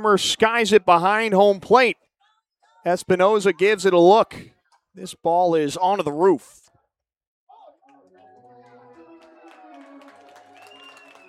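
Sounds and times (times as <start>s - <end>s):
speech: 0.0s - 2.0s, 2.8s - 6.6s
stadium fans applauding: 7.6s - 11.2s.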